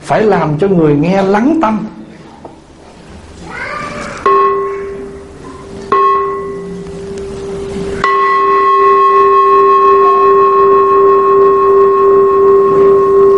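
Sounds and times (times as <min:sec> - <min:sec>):
speech: 0:00.1 - 0:02.0
communal temple bell struck rapidly: 0:04.3 - 0:05.3, 0:05.9 - 0:13.3.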